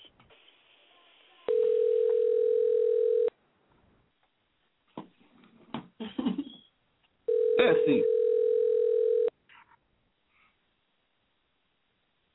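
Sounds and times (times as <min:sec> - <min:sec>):
phone call ringing out: 0:01.5 - 0:03.3, 0:07.3 - 0:09.3
speech: 0:07.6 - 0:08.2.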